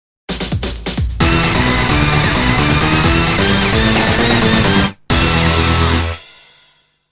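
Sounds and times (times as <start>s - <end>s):
boss clear game jingle: 1.2s - 6.2s.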